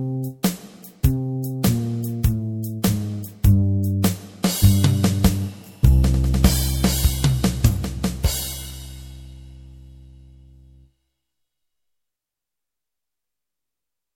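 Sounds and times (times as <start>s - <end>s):
band orchestra playing boogie: 1.3s - 9.0s.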